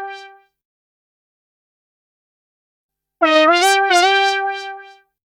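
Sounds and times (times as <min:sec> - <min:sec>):
funk synth in C major: 0:03.3 - 0:04.9.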